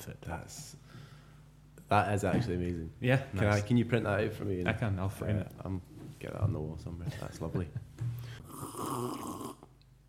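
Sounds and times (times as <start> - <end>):
speech: 0.0 - 1.0, 1.9 - 9.4
loud slurping sip of coffee: 8.4 - 9.7.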